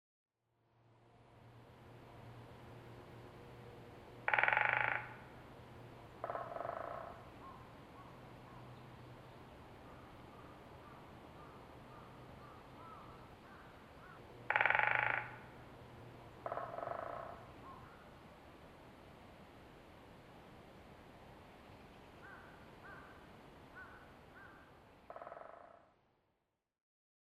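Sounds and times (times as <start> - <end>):
great spotted woodpecker rattling: 4.2 - 5.4, 6.2 - 7.6, 12.8 - 15.6, 16.4 - 17.5, 23.8 - 25.8.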